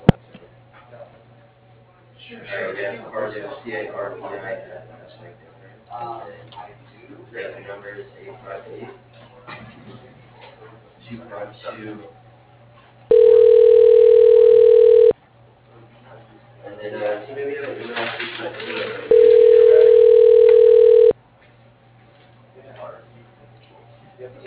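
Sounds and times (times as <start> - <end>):
telephone ringback tone calling an office extension: 13.1 - 15.1, 19.1 - 21.1.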